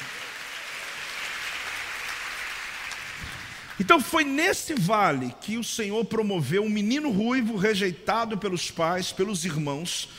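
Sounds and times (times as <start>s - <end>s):
audience applause: 0.0s - 3.8s
speech: 3.8s - 10.1s.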